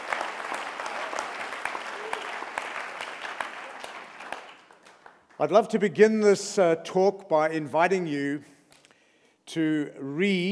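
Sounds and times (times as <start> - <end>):
audience applause: 0.0 - 5.3
speech: 5.4 - 8.5, 9.5 - 10.5.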